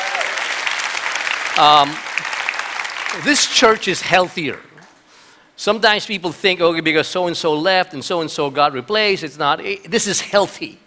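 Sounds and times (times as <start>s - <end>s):
audience applause: 0.0s - 3.8s
speech: 1.6s - 2.1s, 3.1s - 4.7s, 5.6s - 10.8s.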